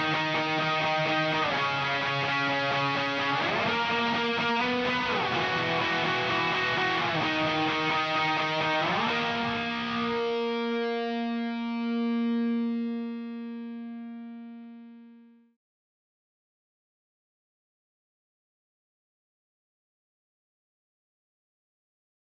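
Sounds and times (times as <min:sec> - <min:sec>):
bass guitar: 0:00.0 - 0:14.8.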